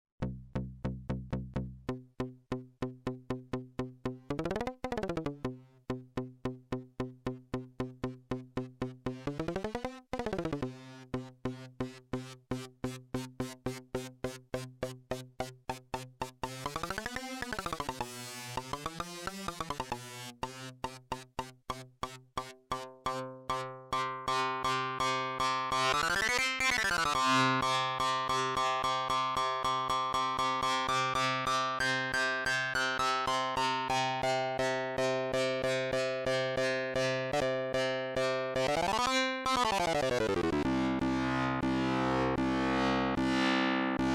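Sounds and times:
MicroFreak synthesizer Karplus-Strong physical modelling: 0.2s - 44.1s.

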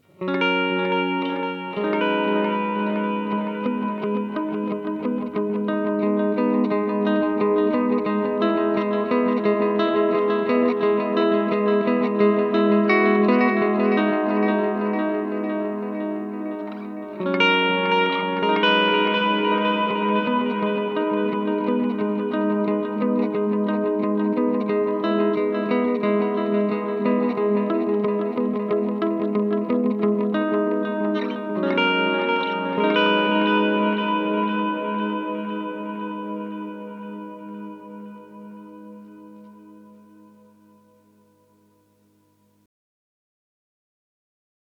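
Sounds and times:
Boss SDE-3000D chorus modulation: 0.0s - 42.4s.

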